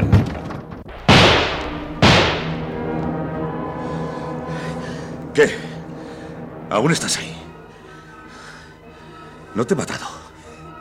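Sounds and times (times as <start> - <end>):
shotgun shots: 0.9 - 2.8
speech: 5.4 - 5.7, 6.7 - 7.4, 9.6 - 10.1.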